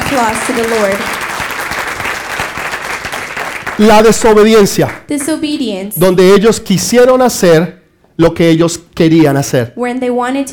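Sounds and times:
crowd applauding: 0:00.0 - 0:05.0
speech: 0:00.1 - 0:01.2, 0:03.8 - 0:10.5.

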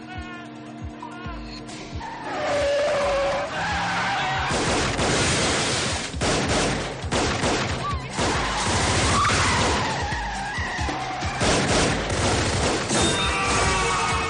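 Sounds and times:
cars roaring through a city car chase: 0:00.0 - 0:06.2, 0:07.9 - 0:14.2
tires squealing in a 1999 action thriller car chase: 0:00.3 - 0:04.7, 0:08.3 - 0:11.5, 0:12.9 - 0:14.2
bursts of gunfire: 0:04.5 - 0:10.0, 0:11.3 - 0:14.0.

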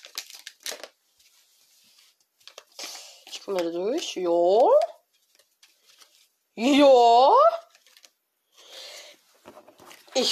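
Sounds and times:
trading card pack wrapper crinkling and tearing: 0:00.0 - 0:01.0, 0:02.4 - 0:06.3, 0:07.5 - 0:08.2
speech: 0:03.4 - 0:04.9, 0:06.6 - 0:07.6.

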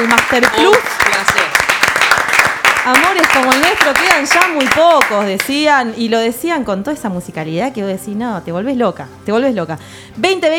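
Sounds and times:
speech: 0:00.0 - 0:01.6, 0:02.8 - 0:10.5
small crowd applause for the band: 0:00.0 - 0:05.6.

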